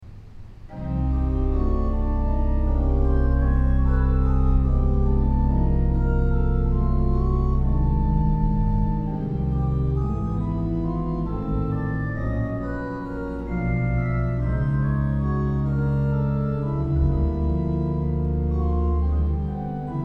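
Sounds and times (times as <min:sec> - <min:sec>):
organ: 0:00.7 - 0:20.0.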